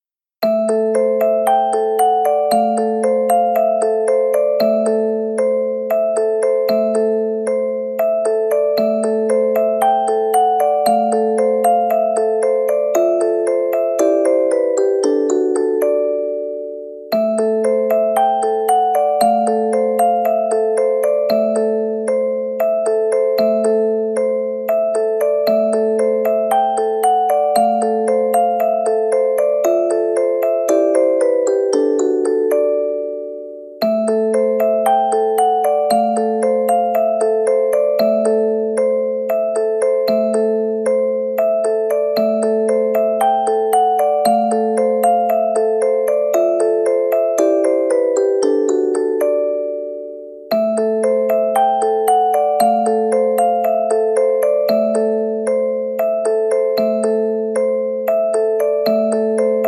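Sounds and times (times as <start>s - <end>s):
music box: 0.4s - 59.6s.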